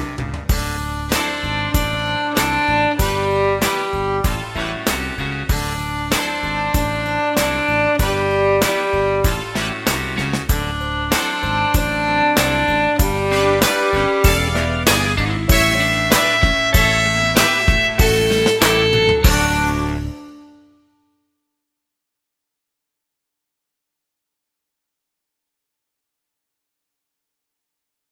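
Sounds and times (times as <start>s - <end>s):
open string boogie riff: 0.0s - 20.8s.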